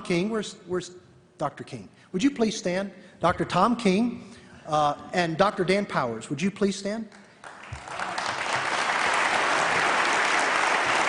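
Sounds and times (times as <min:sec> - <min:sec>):
speech: 0:00.1 - 0:07.2
audience clapping: 0:07.1 - 0:11.0.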